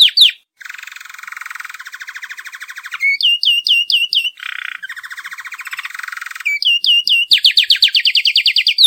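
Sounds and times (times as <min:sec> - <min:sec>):
canary singing: 0:00.0 - 0:08.8.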